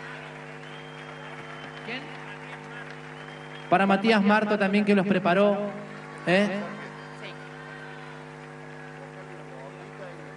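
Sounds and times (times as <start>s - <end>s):
audience applause at a school event for students: 0.0s - 10.3s
speech: 1.9s - 2.3s, 3.7s - 6.8s.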